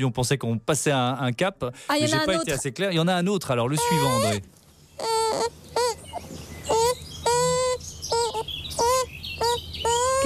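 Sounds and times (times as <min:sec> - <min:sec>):
speech: 0:00.0 - 0:05.6
baby beaver crying in its burrow: 0:03.7 - 0:04.4, 0:05.0 - 0:10.2.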